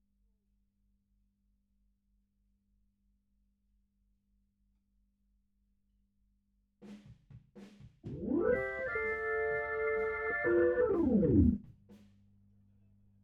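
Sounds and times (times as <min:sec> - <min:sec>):
Hammond organ: 0:08.1 - 0:11.6.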